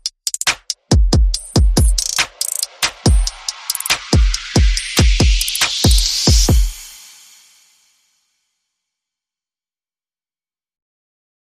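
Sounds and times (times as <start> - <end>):
percussion and effects: 0.0 - 8.1.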